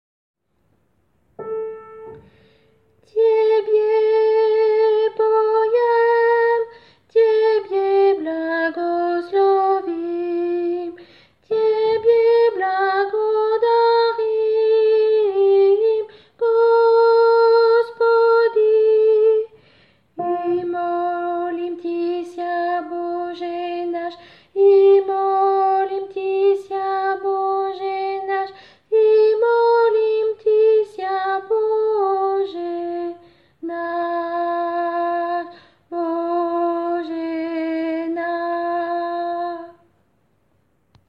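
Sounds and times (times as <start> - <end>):
soprano singing: 1.4 - 39.9.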